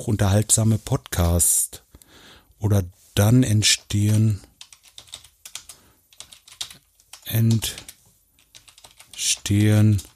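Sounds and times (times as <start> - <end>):
speech: 0.0 - 1.8, 2.6 - 4.5, 7.3 - 7.8, 9.2 - 10.1
typing on a computer keyboard: 3.8 - 10.1.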